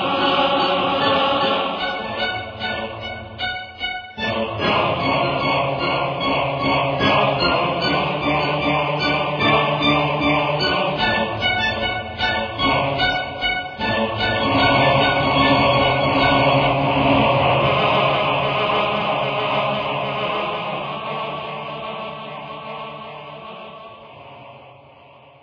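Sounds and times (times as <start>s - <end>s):
strings playing: 0.0s - 18.2s
dark choir singing: 0.0s - 25.4s.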